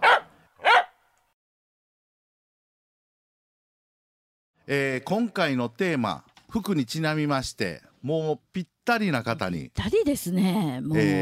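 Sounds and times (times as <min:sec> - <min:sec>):
dog barks in segment jingle: 0:00.0 - 0:01.0
speech: 0:04.7 - 0:11.1.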